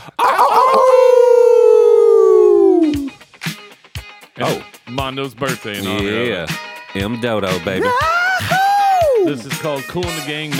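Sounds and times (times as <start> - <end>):
person imitating a wolf howl: 0.0 - 3.1, 7.8 - 9.4
speech: 5.0 - 8.6, 9.2 - 10.5.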